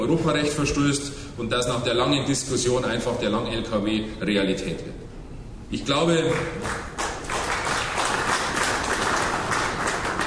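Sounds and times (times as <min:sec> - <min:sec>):
speech: 0:00.0 - 0:05.1, 0:05.7 - 0:07.0
audience clapping at a presentation about long trucks: 0:06.3 - 0:10.2.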